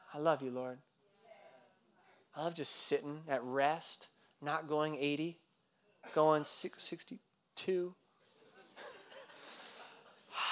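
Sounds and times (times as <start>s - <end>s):
speech: 0.1s - 0.9s, 2.4s - 5.4s, 6.0s - 8.0s
laughter: 8.3s - 10.5s
person taking an audible breath: 9.3s - 10.5s.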